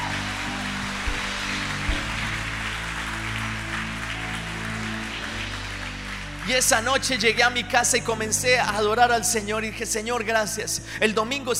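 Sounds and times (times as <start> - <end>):
audience applause: 0.0 - 7.1
speech: 6.5 - 11.5.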